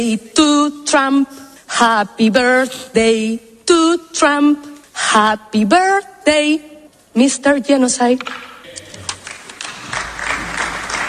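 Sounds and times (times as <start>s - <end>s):
speech: 0.0s - 8.5s
audience applause: 8.7s - 11.0s.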